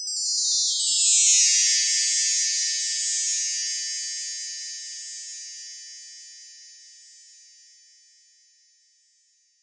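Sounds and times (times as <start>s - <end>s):
chimes: 0.0s - 6.8s.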